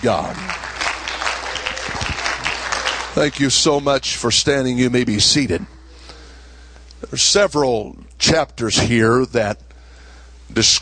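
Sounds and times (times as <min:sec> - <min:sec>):
speech: 0:00.0 - 0:00.6, 0:03.2 - 0:05.8, 0:07.1 - 0:09.7, 0:10.5 - 0:10.8
audience clapping: 0:00.0 - 0:04.0.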